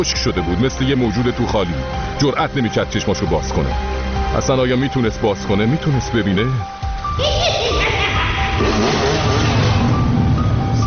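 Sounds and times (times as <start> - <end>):
speech: 0.0 - 7.5
motorcycle engines revving: 8.6 - 10.8.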